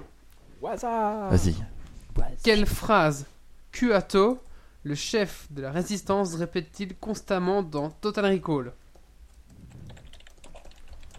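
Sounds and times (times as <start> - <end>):
low hum: 0.0 - 11.1
speech: 0.6 - 8.8
quiet typing on a keyboard during a quiz game: 8.9 - 11.1.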